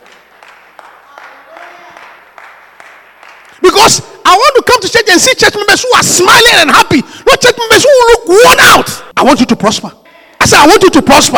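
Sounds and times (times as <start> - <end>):
crowd applauding: 0.0 - 3.6
speech: 3.7 - 11.3.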